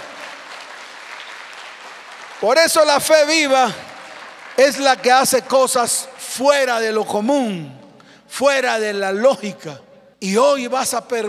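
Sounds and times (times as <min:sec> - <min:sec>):
audience applause: 0:00.0 - 0:05.1
speech: 0:02.4 - 0:03.9, 0:04.6 - 0:11.2.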